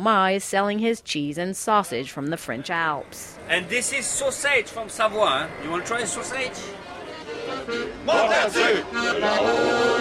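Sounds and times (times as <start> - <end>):
speech: 0.0 - 6.8, 7.7 - 10.0
crowd noise: 0.2 - 10.0
festival crowd singing nostalgic songs: 7.4 - 10.0.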